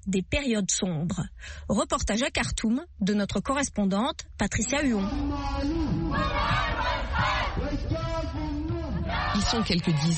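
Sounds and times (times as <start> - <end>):
speech: 0.0 - 7.9, 9.4 - 10.1
crowd of protesters shouting and chanting: 4.9 - 10.1.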